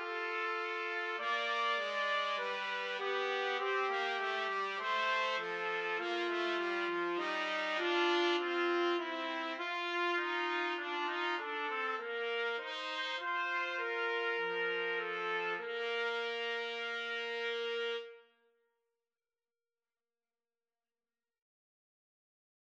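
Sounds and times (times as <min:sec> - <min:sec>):
trumpet trio: 0:00.0 - 0:18.2.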